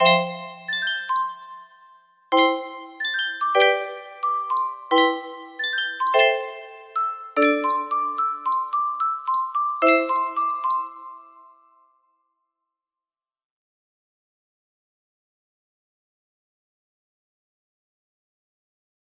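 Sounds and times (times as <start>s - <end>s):
melody: 0.0s - 11.5s.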